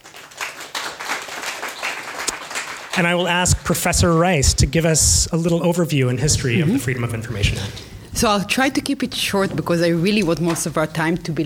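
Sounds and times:
audience applause: 0:00.0 - 0:03.9
speech: 0:03.0 - 0:11.4.

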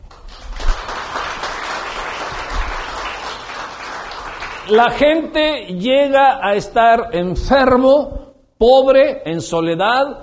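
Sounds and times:
applause: 0:00.0 - 0:05.2
speech: 0:04.7 - 0:10.2.

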